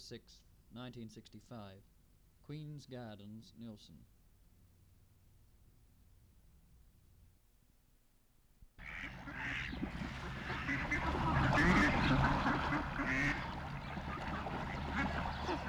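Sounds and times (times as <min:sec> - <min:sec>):
Pacific black duck quacking in New Zealand: 0:08.8 - 0:15.6.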